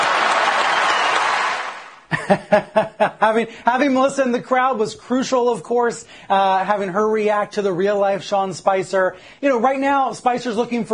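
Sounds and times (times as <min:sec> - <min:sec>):
audience applause: 0:00.0 - 0:02.0
laughter: 0:02.1 - 0:03.3
speech: 0:02.3 - 0:10.9.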